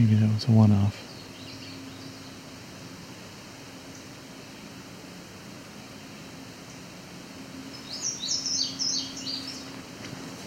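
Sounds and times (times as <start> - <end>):
speech: 0.0 - 1.1
common yellowthroat song: 0.0 - 3.2, 3.8 - 4.8, 7.6 - 9.8.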